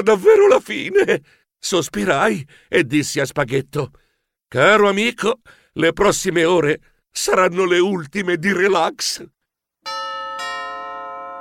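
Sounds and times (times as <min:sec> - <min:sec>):
speech: 0:00.0 - 0:10.0
two-tone doorbell chime: 0:09.8 - 0:11.3.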